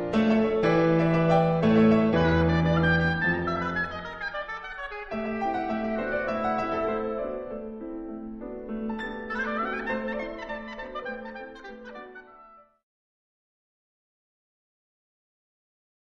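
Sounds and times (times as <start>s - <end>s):
oboe playing a sonata: 0.2s - 7.4s, 8.9s - 12.8s.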